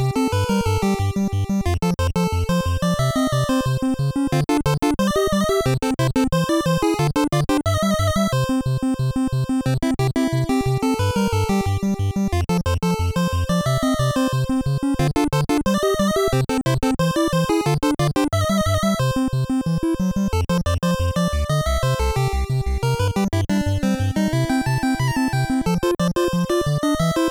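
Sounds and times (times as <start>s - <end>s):
8-bit bonus round game music made with Famitracker: 0.1s - 27.3s.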